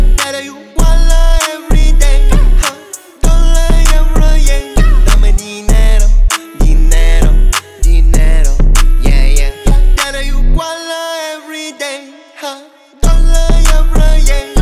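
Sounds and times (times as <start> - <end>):
31 to 35 Hz low bass tone: 0.0 - 0.2, 0.8 - 2.6, 3.2 - 10.6, 13.0 - 14.6.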